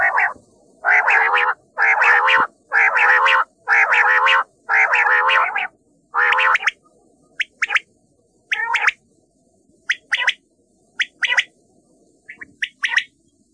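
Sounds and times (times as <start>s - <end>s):
common quail calling: 0.0s - 6.8s, 7.4s - 7.8s, 8.5s - 9.0s, 9.9s - 10.4s, 11.0s - 11.5s, 12.3s - 13.1s.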